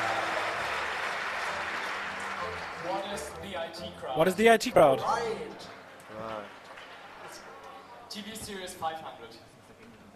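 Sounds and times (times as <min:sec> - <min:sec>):
crowd clapping wildly: 0:00.0 - 0:03.4, 0:05.7 - 0:07.6
speech: 0:03.1 - 0:06.6, 0:08.1 - 0:09.6.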